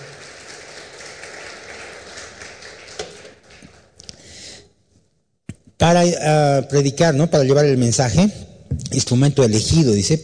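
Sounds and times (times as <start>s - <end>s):
audience applauding loudly: 0.0s - 4.1s
speech: 5.8s - 10.2s.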